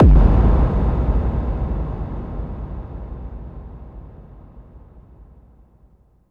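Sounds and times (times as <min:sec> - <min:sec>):
bass drum FX kicks: 0:00.0 - 0:04.6.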